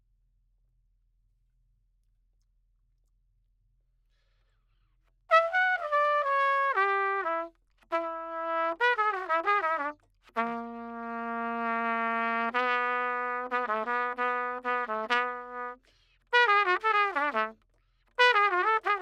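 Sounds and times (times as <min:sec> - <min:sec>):
trumpet: 0:05.3 - 0:19.0.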